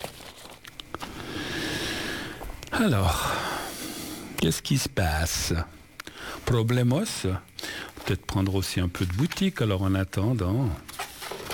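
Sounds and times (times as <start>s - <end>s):
small papers being tidied away: 0.0s - 1.2s, 7.8s - 11.5s
speech: 2.8s - 3.5s, 4.4s - 5.8s, 6.4s - 7.5s, 8.1s - 10.9s.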